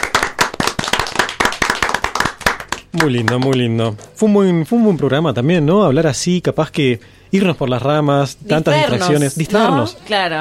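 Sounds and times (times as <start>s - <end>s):
small group clapping to celebrate a show's 200th episode: 0.0s - 4.2s
speech: 2.9s - 10.3s.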